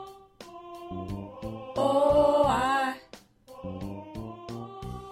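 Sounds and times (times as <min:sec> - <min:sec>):
baritone voice: 0:00.9 - 0:04.3.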